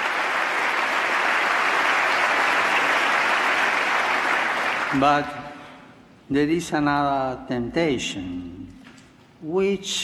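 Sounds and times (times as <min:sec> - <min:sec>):
applause in Congress: 0:00.0 - 0:05.4
speech: 0:04.9 - 0:05.4, 0:06.3 - 0:08.8, 0:09.4 - 0:10.0.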